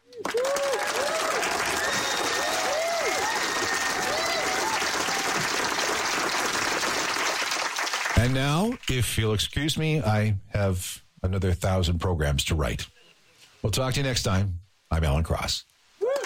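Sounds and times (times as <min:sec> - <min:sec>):
audience applause: 0:00.0 - 0:08.8, 0:16.0 - 0:16.2
speech: 0:08.3 - 0:13.0, 0:13.6 - 0:15.7.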